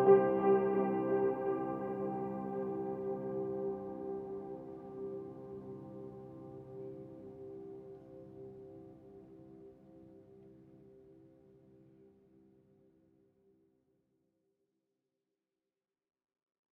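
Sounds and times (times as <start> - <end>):
piano: 0.0 - 11.5.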